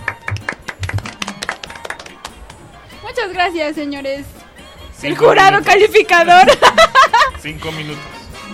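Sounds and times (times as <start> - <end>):
scattered clapping from a few people: 0.0 - 2.8
speech: 3.2 - 4.4, 5.0 - 8.2
laughter: 6.3 - 7.8.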